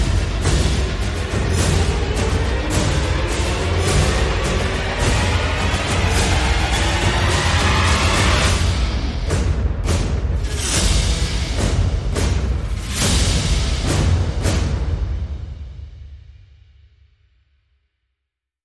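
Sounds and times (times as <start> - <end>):
pulses: 0.0 - 9.3
percussion: 0.0 - 16.9.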